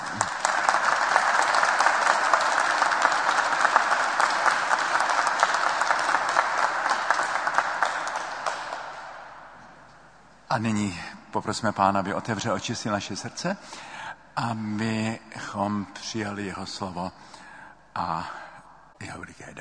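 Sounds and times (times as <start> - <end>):
crowd applauding: 0.0 - 9.6
speech: 10.6 - 17.4, 18.0 - 18.4, 19.0 - 19.5.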